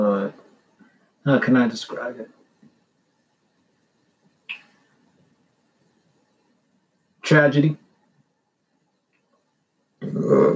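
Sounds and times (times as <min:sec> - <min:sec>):
speech: 0:01.2 - 0:02.4, 0:07.3 - 0:07.8, 0:10.0 - 0:10.5
loud guttural burp: 0:10.0 - 0:10.5.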